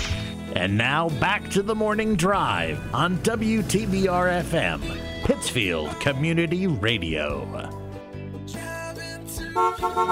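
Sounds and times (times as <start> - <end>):
speech: 0.5 - 7.8, 9.6 - 10.1
car horn honking: 9.4 - 10.1.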